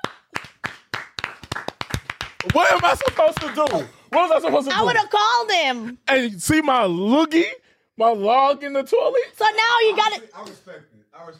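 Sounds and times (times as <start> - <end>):
hands clapping: 0.0 - 4.8
speech: 2.4 - 11.3.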